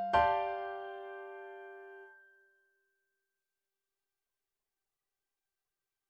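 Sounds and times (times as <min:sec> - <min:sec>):
march, soprano part: 0:00.2 - 0:02.0.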